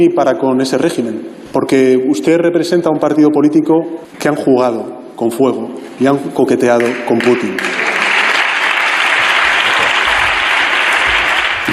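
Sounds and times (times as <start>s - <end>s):
speech: 0.0s - 7.9s
audience applause: 6.8s - 11.7s.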